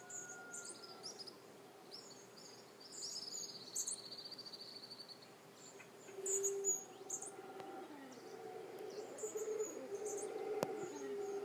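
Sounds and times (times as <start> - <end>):
howler monkey roaring and moaning: 6.1 - 11.4.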